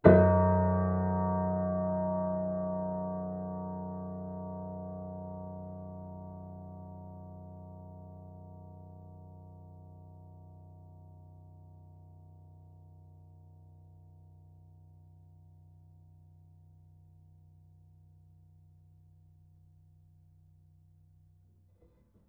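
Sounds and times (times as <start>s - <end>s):
low-mid piano harmonics: 0.0s - 9.0s.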